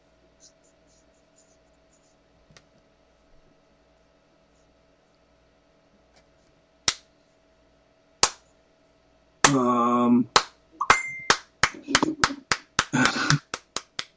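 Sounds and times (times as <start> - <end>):
slow hand clap: 6.9 - 7.1, 8.2 - 8.4, 10.4 - 14.1.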